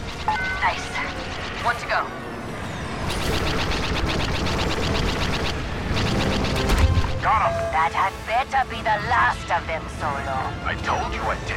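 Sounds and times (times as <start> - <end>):
rapid automatic video game gunfire: 0.0 - 1.9, 3.0 - 7.2
speech: 0.6 - 2.4, 7.3 - 11.5.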